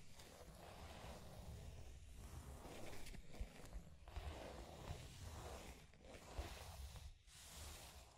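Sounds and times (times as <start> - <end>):
scratching and tracing: 0.2 - 8.1.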